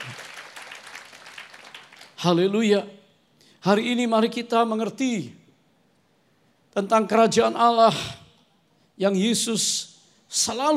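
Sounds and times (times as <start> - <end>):
audience applauding: 0.0 - 2.2
speech: 2.2 - 3.0, 3.6 - 5.4, 6.8 - 8.2, 9.0 - 10.7.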